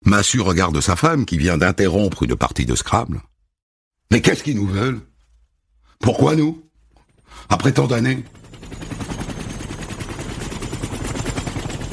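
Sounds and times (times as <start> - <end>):
speech: 0.1 - 3.3, 4.1 - 5.1, 6.0 - 6.7, 7.3 - 9.0
helicopter rotor chopping: 6.9 - 11.9.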